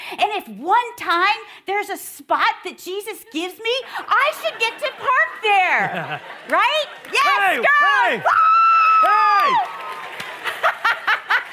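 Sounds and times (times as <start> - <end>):
speech: 0.1 - 9.7
audience laughing: 3.8 - 8.2, 9.8 - 11.5
audience clapping: 5.8 - 11.5.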